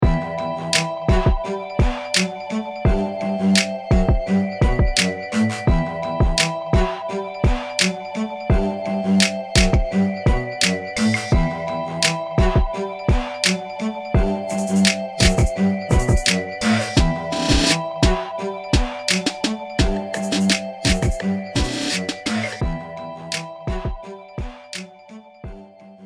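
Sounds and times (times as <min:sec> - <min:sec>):
instrumental music: 0:00.0 - 0:26.0.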